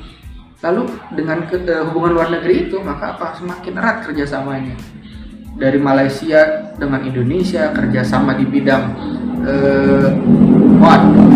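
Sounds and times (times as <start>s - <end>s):
speech: 0.6s - 11.3s
motorcycle engine revving outside: 4.1s - 11.3s.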